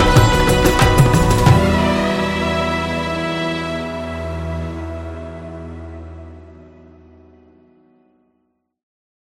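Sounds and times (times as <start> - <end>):
Indian traditional music: 0.0 - 7.2.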